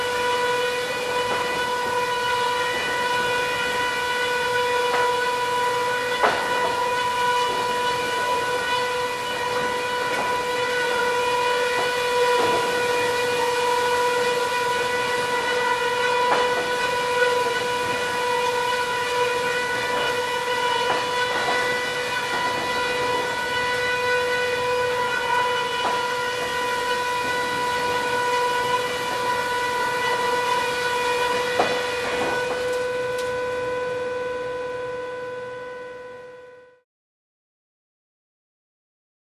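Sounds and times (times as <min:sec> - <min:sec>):
distant warning siren: 0:00.0 - 0:36.8.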